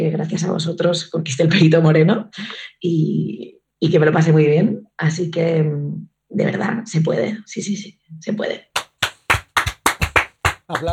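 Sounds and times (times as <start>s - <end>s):
speech: 0.0s - 8.7s, 10.7s - 10.9s
applause: 8.8s - 10.9s.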